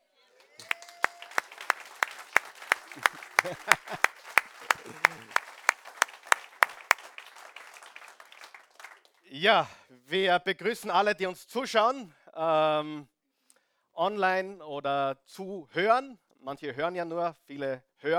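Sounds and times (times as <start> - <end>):
audience applause: 0.4 - 9.2
laughter: 0.6 - 9.0
speech: 3.0 - 4.1, 9.4 - 13.1, 14.0 - 18.1.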